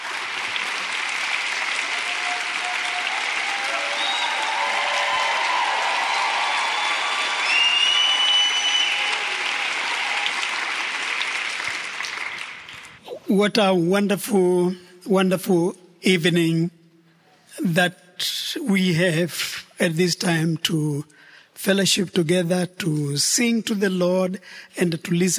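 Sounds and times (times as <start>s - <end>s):
audience clapping at a church fellowship evening: 0.0s - 13.0s
speech: 13.3s - 16.8s, 17.6s - 25.3s.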